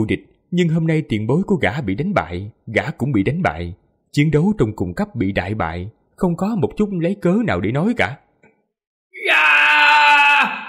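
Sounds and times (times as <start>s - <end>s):
speech: 0.0s - 8.2s
man howling in rage with his face turned to the sky: 9.2s - 10.6s.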